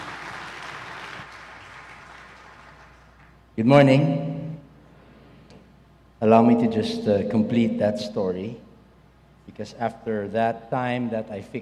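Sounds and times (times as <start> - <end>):
church congregation applauding to welcome a pastor: 0.0 - 3.4
speech: 3.6 - 4.3, 6.2 - 8.6, 9.5 - 11.6.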